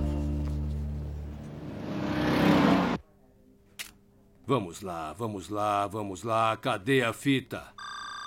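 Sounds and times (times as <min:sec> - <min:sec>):
car arriving in a dubbed film scene: 0:00.2 - 0:03.0
speech: 0:04.5 - 0:07.8.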